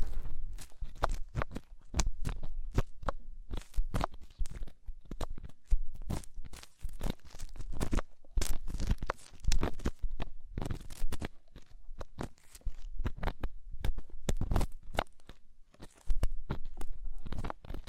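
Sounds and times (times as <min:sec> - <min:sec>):
deep ear cleaning crackling and scratching: 0:00.0 - 0:17.8.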